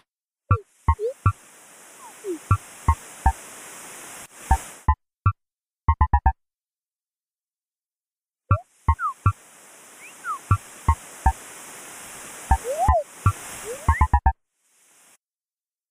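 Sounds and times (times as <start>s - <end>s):
birds in a cave: 0.6s - 4.9s, 8.6s - 15.2s.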